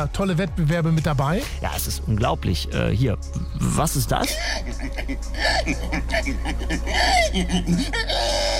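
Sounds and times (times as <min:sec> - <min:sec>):
speech: 0:00.0 - 0:08.5
laughter: 0:04.1 - 0:08.1
human imitating a pig: 0:05.4 - 0:08.5.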